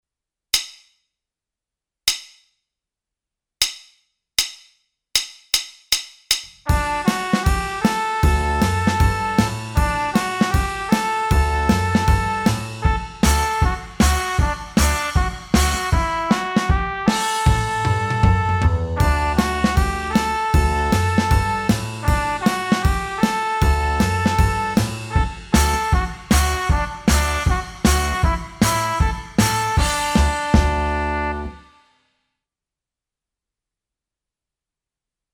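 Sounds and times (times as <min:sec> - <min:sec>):
trumpet playing: 0:06.7 - 0:31.8.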